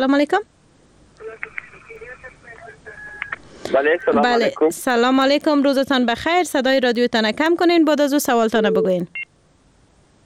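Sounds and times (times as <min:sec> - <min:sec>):
speech: 0:00.0 - 0:00.5, 0:03.7 - 0:09.2
faint voice: 0:01.2 - 0:04.7
sustained telephone tone: 0:08.6 - 0:09.2
telephone beeps as a caller is put through on a radio call-in show: 0:08.6 - 0:09.3.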